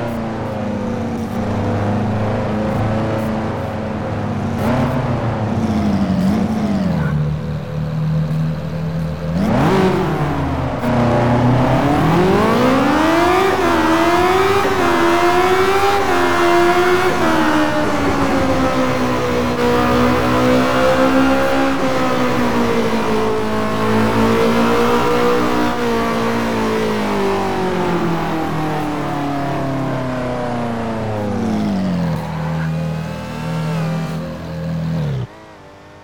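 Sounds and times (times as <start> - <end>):
2014 Ferrari 458 Speciale engine: 0.0 - 36.0.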